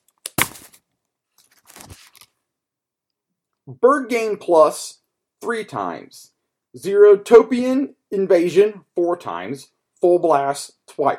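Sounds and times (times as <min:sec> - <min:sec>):
paper page turning: 0:00.0 - 0:02.4
speech: 0:03.7 - 0:11.1.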